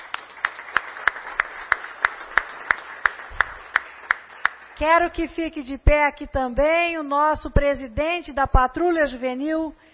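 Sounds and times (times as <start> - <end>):
audience clapping in unison: 0.0 - 5.2
speech: 4.8 - 9.8.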